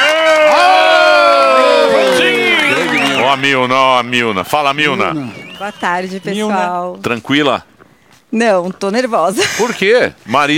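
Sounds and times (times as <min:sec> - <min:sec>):
audience applause and cheering: 0:00.0 - 0:06.4
speech: 0:03.3 - 0:07.7, 0:08.3 - 0:10.5.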